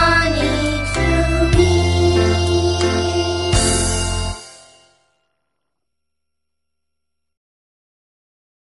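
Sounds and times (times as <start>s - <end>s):
English songs for kids: 0.0s - 5.0s.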